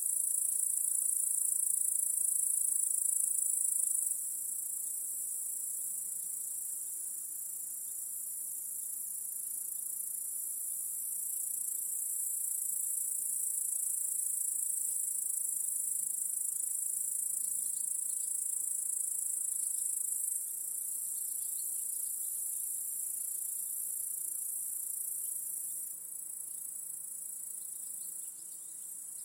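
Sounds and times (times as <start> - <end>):
cricket chorus trilling: 0.0 - 29.2.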